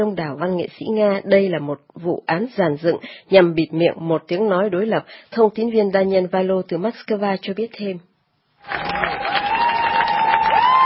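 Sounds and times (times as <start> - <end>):
speech: 0.0 - 9.4
hundreds of supporters cheering and applauding outside a Moscow court: 8.6 - 10.8.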